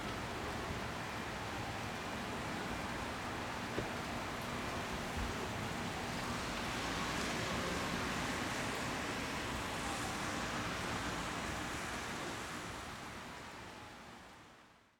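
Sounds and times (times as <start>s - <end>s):
light rain in a forest during a police search: 0.0s - 14.9s.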